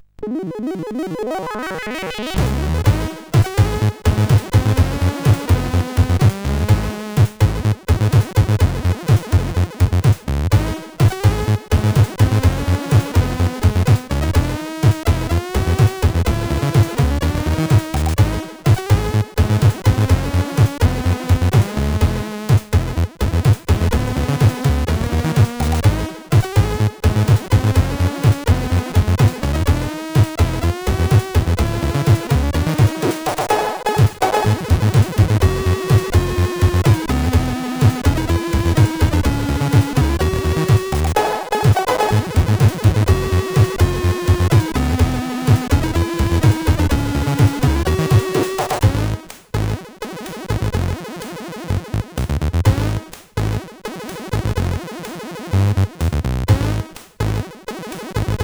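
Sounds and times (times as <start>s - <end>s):
SID CSG8580 chiptune synthesizer: 0.2s - 58.2s.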